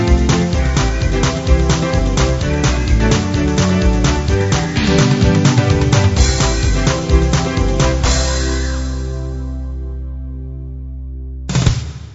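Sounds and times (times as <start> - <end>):
gospel music: 0.0 - 10.5.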